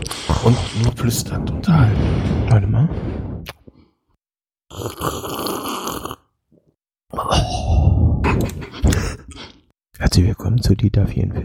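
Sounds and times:
speech: 0.4s - 3.6s, 4.7s - 5.4s, 10.0s - 11.4s
loud exaggerated breathing: 7.1s - 9.7s.

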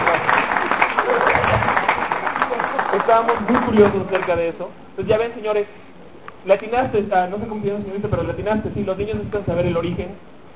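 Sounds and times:
applause: 0.0s - 4.5s
speech: 3.1s - 10.4s.

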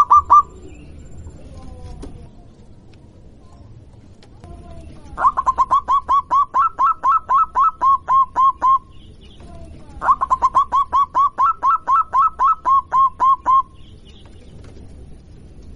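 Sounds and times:
zebra dove cooing song: 0.0s - 0.7s, 4.6s - 14.9s.

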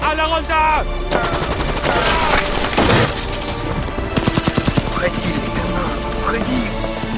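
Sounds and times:
speech: 0.1s - 2.6s, 5.1s - 7.1s
machine-gun fire at German troops in a war film: 1.1s - 5.7s.

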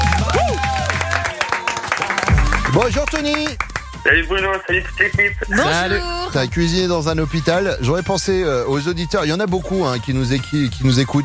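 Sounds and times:
studio audience applauding a radio show caller: 0.0s - 4.8s
speech: 2.8s - 11.2s.

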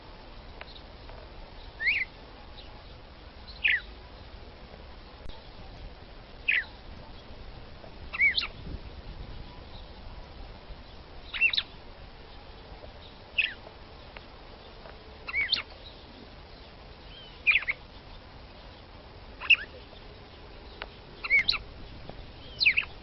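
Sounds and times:
red-cowled cardinal female singing short sweeping whistles: 1.8s - 2.1s, 8.1s - 8.6s, 11.3s - 11.7s, 15.3s - 15.7s, 17.1s - 17.8s, 21.2s - 21.7s, 22.3s - 23.0s.

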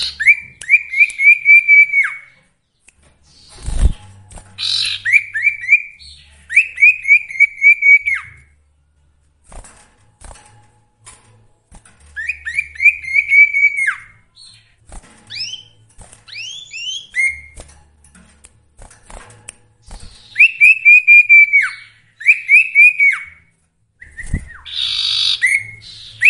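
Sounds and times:
sooty-headed bulbul song: 0.0s - 8.6s, 12.0s - 17.6s, 19.8s - 26.2s.

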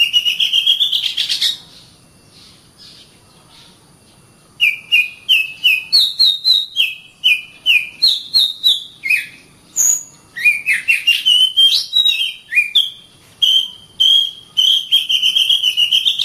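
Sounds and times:
Oriental magpie-robin song: 0.0s - 3.8s, 4.6s - 16.2s.

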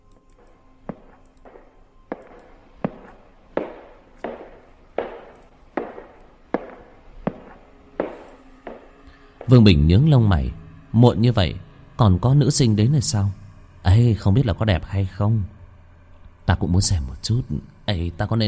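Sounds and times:
slow footsteps echoing in a corridor: 0.4s - 9.5s
speech: 9.5s - 15.6s, 16.5s - 18.4s.

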